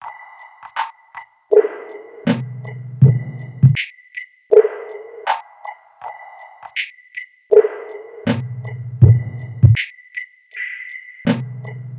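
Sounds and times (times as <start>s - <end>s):
subtle music loop: 0.0s - 11.9s.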